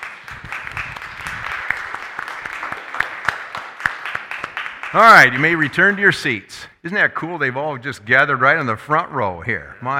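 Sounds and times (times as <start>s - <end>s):
audience applause: 0.0s - 5.9s
speech: 4.9s - 9.9s.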